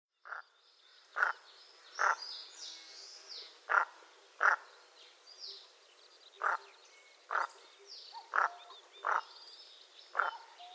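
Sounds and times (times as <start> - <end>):
common merganser croaking in Hokkaido: 1.2 - 1.4, 2.0 - 2.2, 3.7 - 4.7, 6.4 - 6.7, 7.3 - 7.5, 8.2 - 9.4, 10.2 - 10.4.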